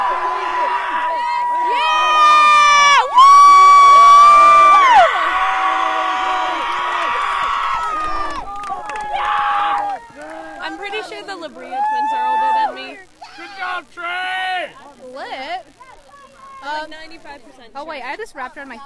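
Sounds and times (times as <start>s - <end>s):
crowd cheering and whooping: 0.0s - 13.6s.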